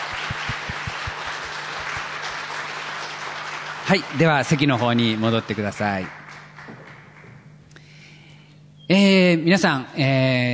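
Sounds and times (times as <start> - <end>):
audience applauding: 0.0 - 7.5
speech: 3.9 - 6.2, 8.9 - 10.5.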